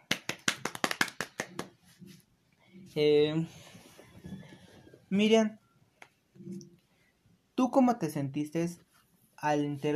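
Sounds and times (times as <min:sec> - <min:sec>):
applause: 0:00.0 - 0:01.8
speech: 0:02.9 - 0:03.6, 0:05.1 - 0:05.6, 0:07.6 - 0:08.8, 0:09.4 - 0:09.9.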